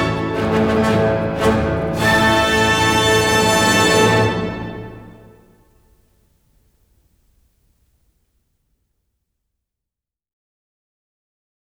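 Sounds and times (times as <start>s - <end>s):
piano concerto: 0.0s - 5.5s.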